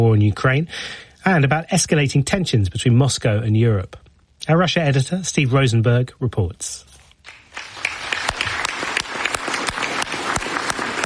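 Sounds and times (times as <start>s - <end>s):
speech: 0.0s - 7.4s
applause from a large crowd for a standing ovation: 7.3s - 11.0s.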